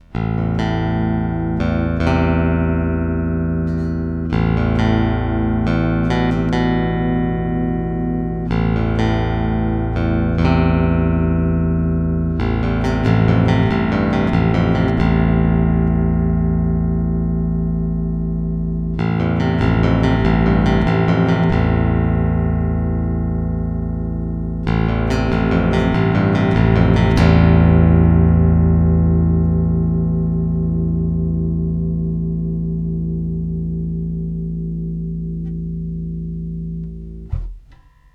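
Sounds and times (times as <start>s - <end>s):
electric guitar on active neck pickup: 0.0s - 37.7s.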